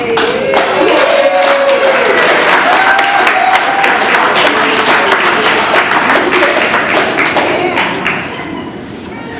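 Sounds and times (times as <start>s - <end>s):
audience applause for a speaker: 0.1s - 8.3s
whoops: 0.5s - 4.0s.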